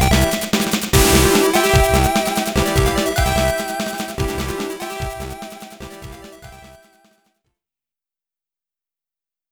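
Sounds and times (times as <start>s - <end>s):
victory fanfare: 0.0s - 7.0s.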